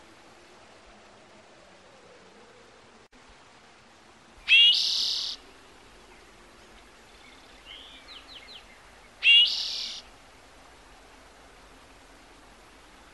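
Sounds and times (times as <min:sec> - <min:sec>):
bird whistled song: 0:04.5 - 0:05.4, 0:09.2 - 0:10.0.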